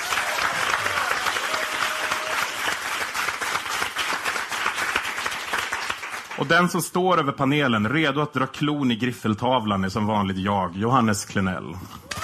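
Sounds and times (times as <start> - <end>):
audience applause: 0.0 - 6.7
speech: 6.4 - 12.0.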